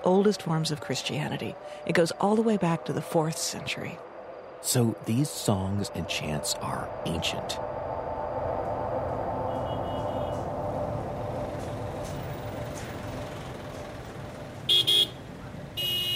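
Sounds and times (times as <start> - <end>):
speech: 0.0 - 7.9
car traffic in downtown Addis Ababa heard from a moving car: 0.0 - 16.1
car horn toots: 9.5 - 10.5, 14.6 - 16.1.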